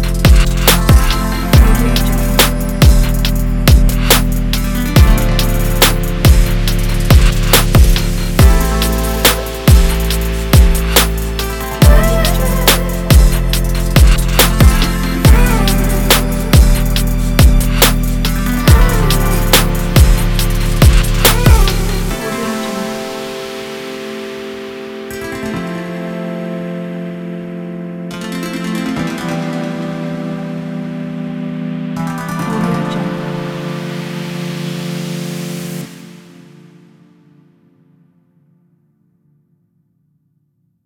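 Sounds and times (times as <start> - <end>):
fashion chill trap R&B beat: 0.0 - 25.3.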